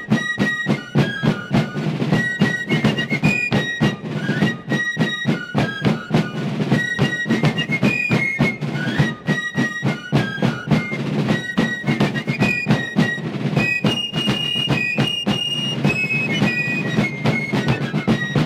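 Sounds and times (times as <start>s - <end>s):
drum: 0.0s - 18.4s.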